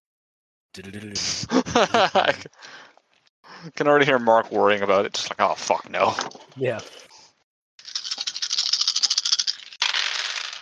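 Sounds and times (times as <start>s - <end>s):
laughter: 0.8s - 2.7s
speech: 0.8s - 2.7s, 3.6s - 7.0s
many dice rolling: 7.8s - 10.6s.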